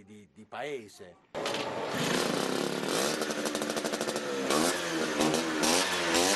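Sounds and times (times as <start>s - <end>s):
people talking: 0.0s - 1.2s
Ape vehicle engine revving: 1.4s - 6.3s.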